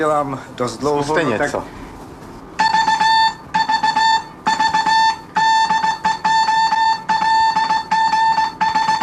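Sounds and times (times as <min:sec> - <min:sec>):
speech: 0:00.0 - 0:01.8
ship's call sign sent in Morse code: 0:02.6 - 0:09.0.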